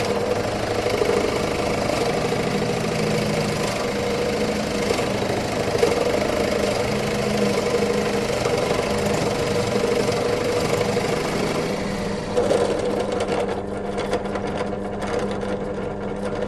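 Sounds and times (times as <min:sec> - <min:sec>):
old belt grinder running: 0:00.0 - 0:16.4.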